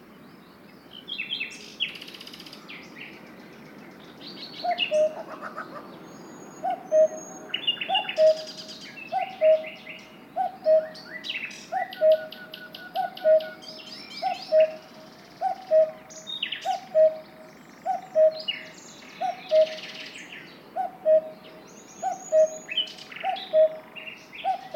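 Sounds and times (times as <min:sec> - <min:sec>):
small birds chirping and trilling: 0:00.0 - 0:24.7
cuckoo calling: 0:04.6 - 0:05.8, 0:06.6 - 0:24.7.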